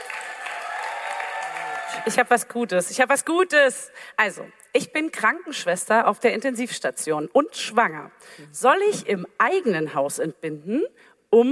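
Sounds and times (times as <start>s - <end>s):
stage show audience clapping for a guest: 0.0s - 2.3s
speech: 2.0s - 11.5s.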